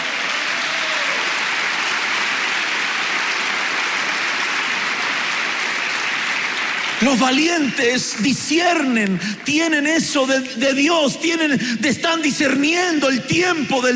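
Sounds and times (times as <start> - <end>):
applause: 0.0 - 10.8
speech: 7.0 - 13.9.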